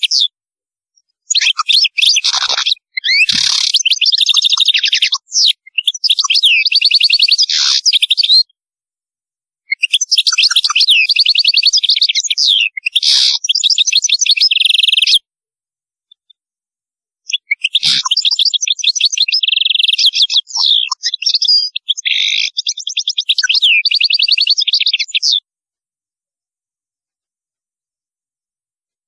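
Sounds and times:
European goldfinch twittering song: 1.0 - 8.5, 9.8 - 15.2, 17.3 - 25.4.

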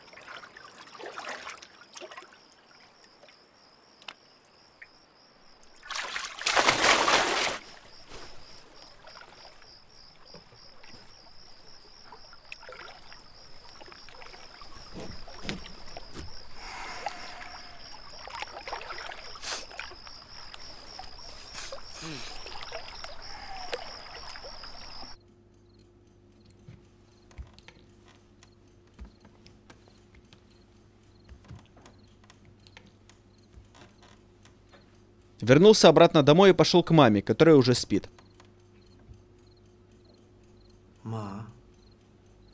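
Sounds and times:
softer sloshing and swimming strokes: 0.0 - 3.2, 5.6 - 25.2
person jumping into water: 5.8 - 9.6, 12.5 - 25.2
speech: 35.4 - 38.2.

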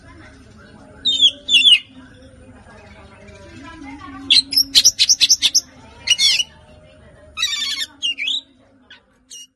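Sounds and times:
Oriental magpie-robin song: 1.0 - 2.0, 4.3 - 6.5, 7.4 - 8.5.

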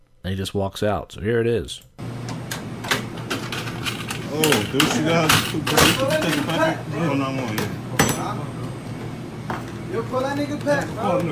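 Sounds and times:
speech: 0.2 - 2.0, 4.4 - 8.8, 9.9 - 11.3
crowbar banging against a digital cash register while prying: 3.2 - 6.5.

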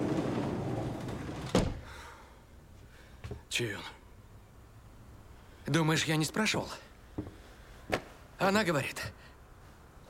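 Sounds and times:
sliding door in a kitchen rumbling along its track and shutting: 0.0 - 2.0
speech: 3.5 - 4.0, 5.7 - 7.4, 8.4 - 9.3.

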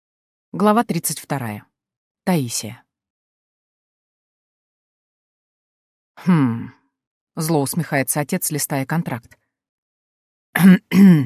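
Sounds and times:
speech: 0.6 - 1.7, 2.3 - 2.8, 6.2 - 6.8, 7.4 - 9.4, 10.6 - 11.2
light cough and throat clearing: 10.6 - 11.2.

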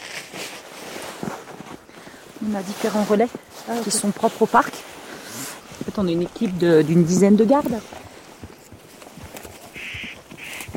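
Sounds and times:
speech: 2.4 - 4.9, 5.9 - 8.0
spotted nutcracker harsh rasping calls in an Alps nature reserve: 9.7 - 10.7.

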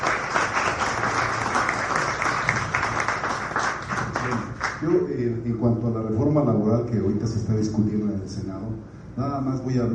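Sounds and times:
audience at a forum on labor reform applauding a speaker: 0.0 - 4.9
speech: 4.8 - 9.9.

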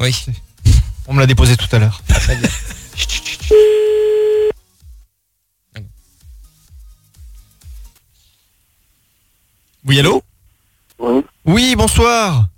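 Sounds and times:
speech: 0.0 - 0.5, 1.1 - 4.0, 9.9 - 10.3, 11.0 - 12.5
steady held telephone tone: 3.5 - 4.5.

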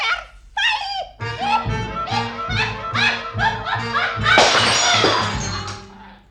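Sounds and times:
laughter: 0.0 - 5.4
glass bottle shattering: 4.4 - 6.0.

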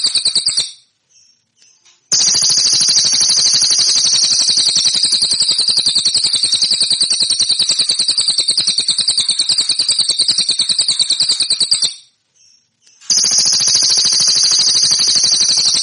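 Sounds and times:
song: 2.1 - 12.1, 12.9 - 15.8.

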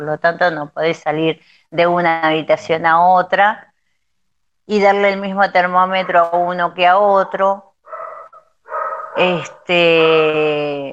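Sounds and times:
speech: 0.0 - 3.7, 4.7 - 7.7, 9.2 - 10.9
small dog barking: 7.9 - 9.7.

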